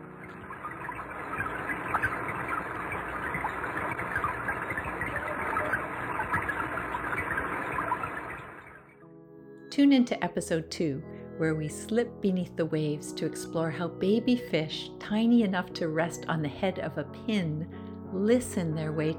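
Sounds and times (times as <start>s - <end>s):
rain heard underwater: 0.0s - 8.9s
speech: 9.8s - 19.1s.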